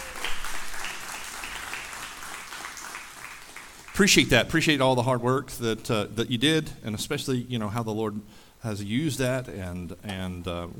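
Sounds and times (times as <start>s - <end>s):
audience applause: 0.0s - 4.3s
speech: 4.0s - 10.7s.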